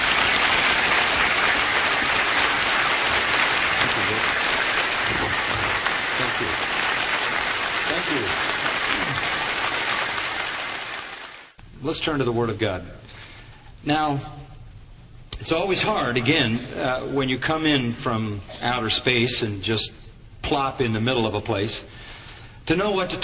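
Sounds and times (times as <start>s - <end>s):
church audience applause in Milwaukee welcoming a guest preacher: 0.0s - 11.6s
speech: 11.9s - 13.2s, 13.8s - 14.5s, 15.4s - 22.0s, 22.7s - 23.2s.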